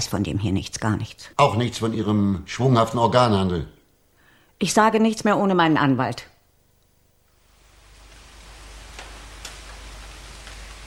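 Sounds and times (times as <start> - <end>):
speech: 0.0 - 3.8, 4.6 - 6.3
steady rain on a cool Good Friday morning: 7.2 - 10.8.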